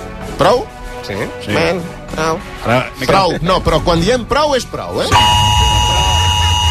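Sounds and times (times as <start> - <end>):
speech: 0.4 - 5.5
electronic alarm tone: 5.1 - 6.7.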